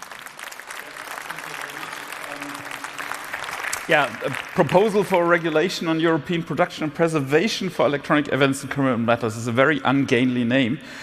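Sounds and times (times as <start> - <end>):
audience applause: 0.0 - 6.1
speech: 3.9 - 11.0.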